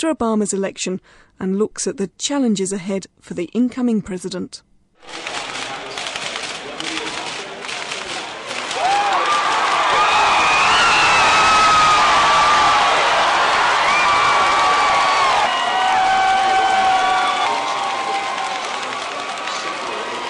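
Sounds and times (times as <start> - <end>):
speech: 0.0 - 5.4
crowd cheering at election night party: 5.4 - 20.2.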